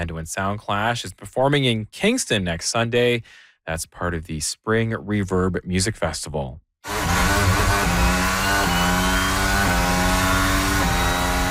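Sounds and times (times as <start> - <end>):
speech: 0.0 - 7.0
Formula One race car engines roaring: 6.9 - 11.4.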